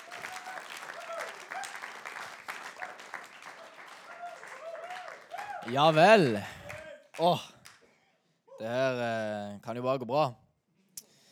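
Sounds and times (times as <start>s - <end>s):
audience applause: 0.0s - 7.8s
speech: 5.6s - 6.6s, 7.2s - 7.5s, 8.6s - 10.4s.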